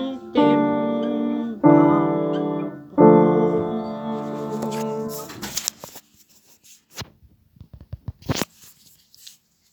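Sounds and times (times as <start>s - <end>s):
alto: 0.0s - 5.6s
piano: 0.0s - 5.6s.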